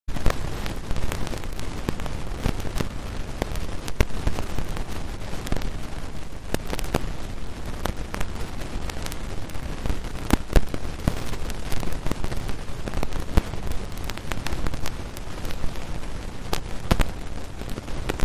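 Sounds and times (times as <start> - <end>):
riverside ambience: 0.1 - 18.2.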